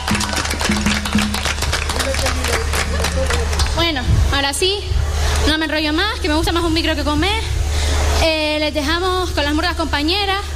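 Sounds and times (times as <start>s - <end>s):
crowd applauding: 0.0s - 4.0s
speech: 3.8s - 7.5s, 8.2s - 10.5s.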